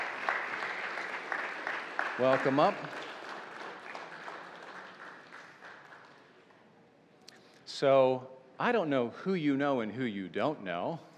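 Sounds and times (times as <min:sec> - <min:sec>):
studio audience applauding to welcome people onto a stage: 0:00.0 - 0:06.4
speech: 0:02.2 - 0:03.1, 0:07.8 - 0:11.1.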